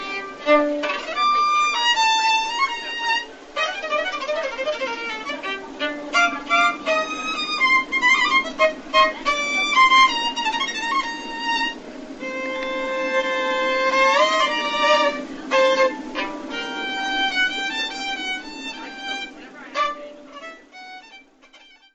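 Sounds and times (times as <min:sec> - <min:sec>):
violin playing a Hungarian dance: 0:00.0 - 0:21.9.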